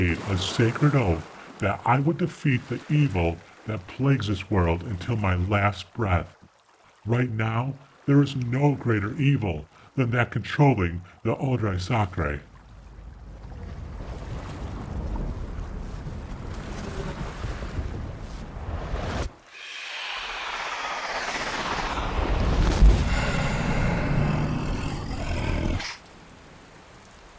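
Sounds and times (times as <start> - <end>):
churning, surging sea waves: 0.0 - 27.3
rain in a storm at sea: 0.0 - 27.3
speech: 0.2 - 6.4, 7.0 - 12.5
wind roaring in a storm at sea: 17.1 - 26.0.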